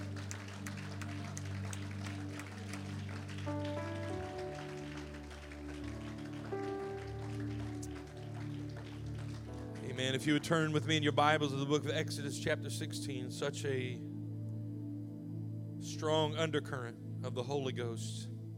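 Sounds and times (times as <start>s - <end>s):
audience clapping: 0.0s - 10.8s
sustained keyboard chords: 0.0s - 18.5s
speech: 10.0s - 14.1s, 16.0s - 18.3s.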